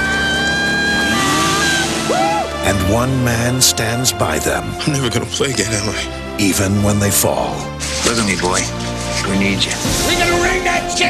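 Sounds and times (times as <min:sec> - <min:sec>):
car engine droning while driving off slowly: 0:00.0 - 0:03.5
speech: 0:02.9 - 0:11.0.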